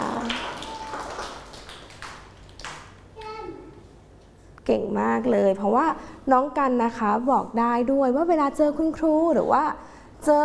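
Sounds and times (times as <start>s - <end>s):
applause, clapping hands: 0.0s - 3.0s
speech: 4.7s - 10.4s.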